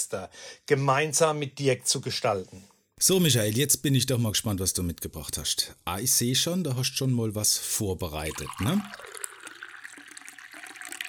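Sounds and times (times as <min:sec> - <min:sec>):
speech: 0:00.1 - 0:09.2
wine being poured into glass: 0:07.8 - 0:11.0.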